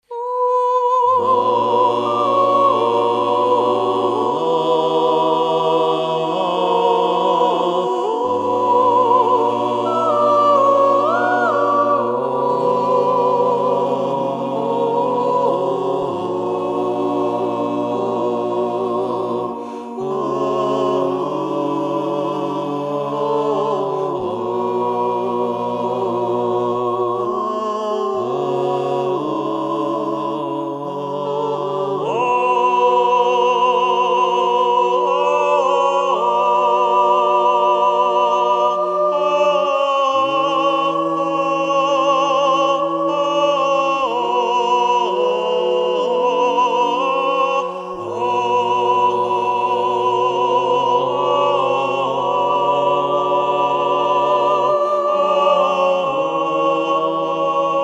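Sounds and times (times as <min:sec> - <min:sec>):
choir singing: 0:00.0 - 0:57.8.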